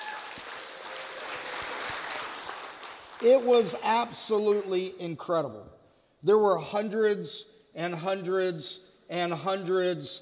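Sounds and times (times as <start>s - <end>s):
audience applause: 0.0s - 3.8s
speech: 3.2s - 10.1s.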